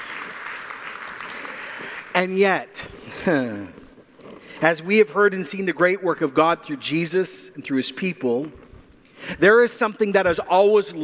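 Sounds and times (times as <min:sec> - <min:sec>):
audience applause: 0:00.0 - 0:02.1
speech: 0:02.2 - 0:03.8, 0:04.6 - 0:08.6, 0:09.2 - 0:11.0.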